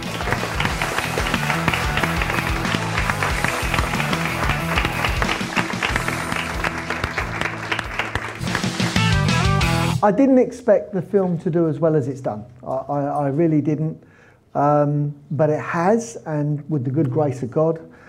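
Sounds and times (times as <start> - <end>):
standing audience applause welcoming a guest: 0.0 - 9.9
speech: 10.0 - 17.9.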